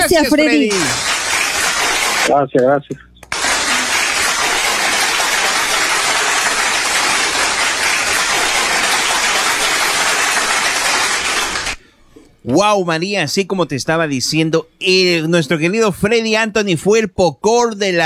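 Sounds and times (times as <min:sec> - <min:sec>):
speech: 0:00.0 - 0:01.1, 0:02.3 - 0:03.1, 0:12.5 - 0:18.0
loud applause: 0:00.7 - 0:02.3, 0:03.3 - 0:11.8.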